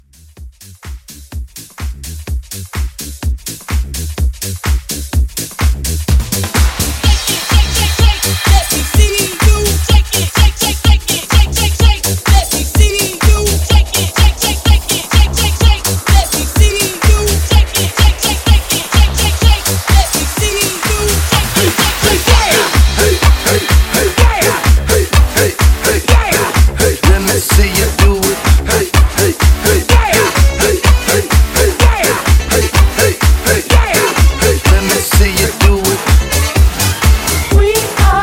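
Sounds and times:
Halloween music mashup: 0.0s - 38.2s.

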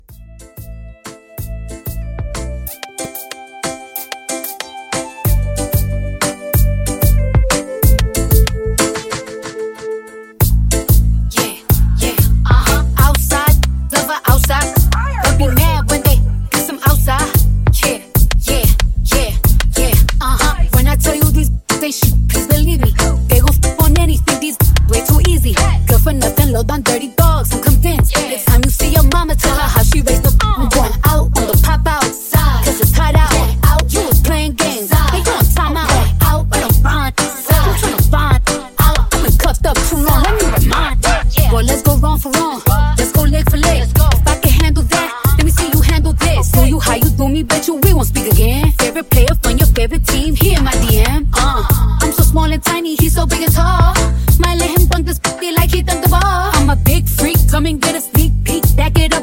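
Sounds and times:
music mashup: 0.0s - 59.2s.

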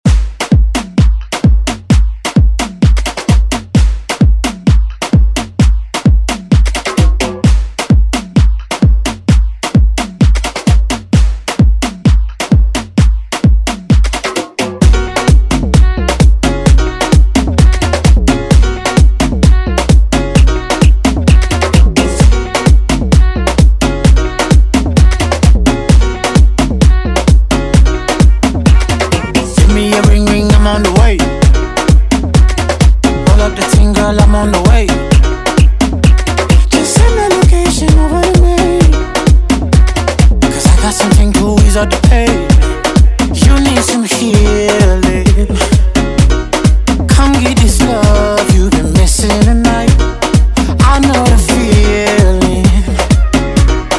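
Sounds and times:
afrobeat music: 0.0s - 53.9s.

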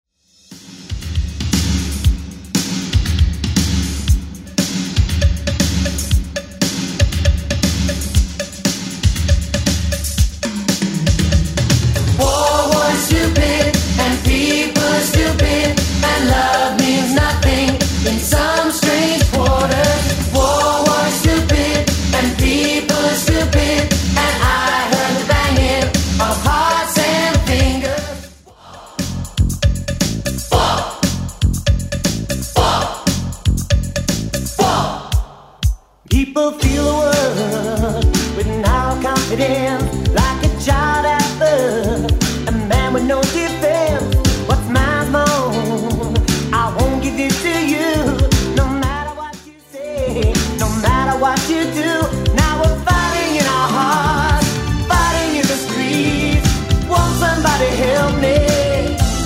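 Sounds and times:
1980s dance mix at 118 bpm: 0.7s - 59.2s.

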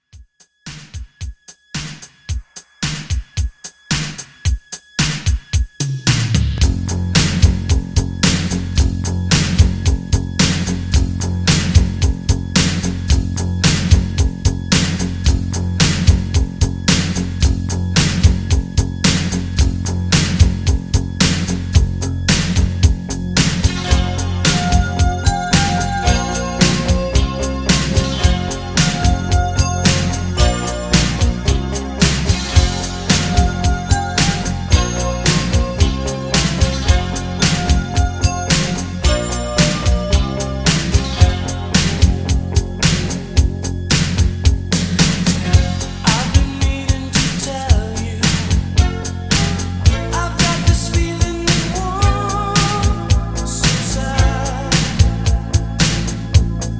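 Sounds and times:
80s drum beat: 0.0s - 56.7s.

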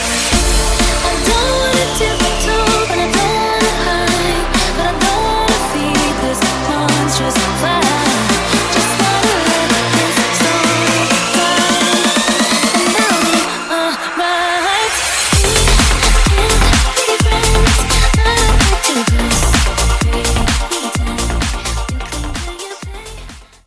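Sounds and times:
music beat in D minor: 0.0s - 23.6s.

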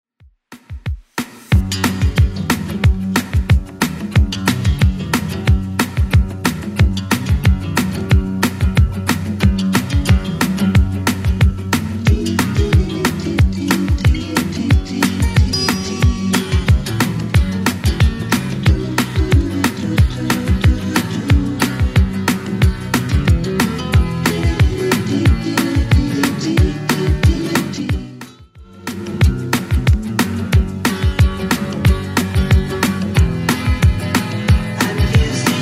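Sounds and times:
60s style music loop: 0.5s - 35.6s.

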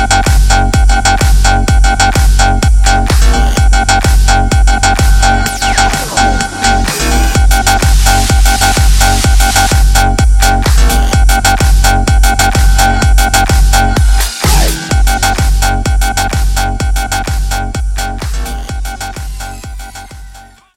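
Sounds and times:
hype claps in a beat drop: 0.0s - 5.3s, 5.9s - 20.4s.

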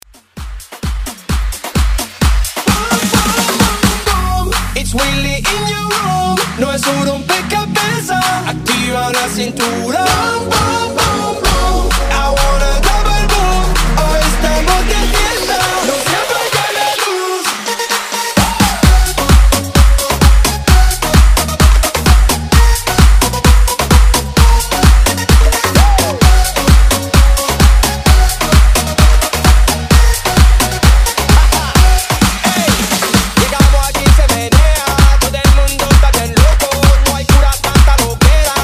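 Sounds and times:
afrobeat music: 0.0s - 38.6s.

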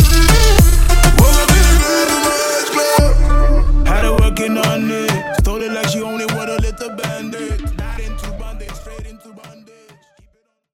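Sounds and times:
party reggaeton music: 0.0s - 10.4s.

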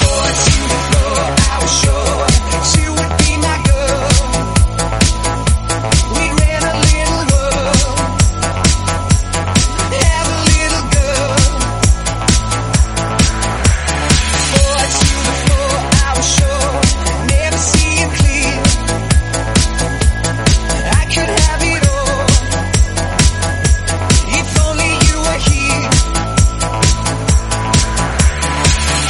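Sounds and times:
Redrum drum machine beat in D flat minor: 0.0s - 29.0s.

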